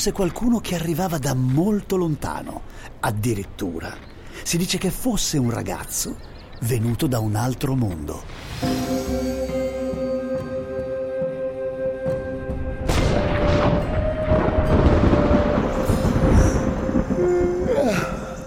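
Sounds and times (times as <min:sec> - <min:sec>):
speech: 0:00.0 - 0:09.6
steady humming drone: 0:08.6 - 0:18.4
thunder: 0:12.8 - 0:18.4.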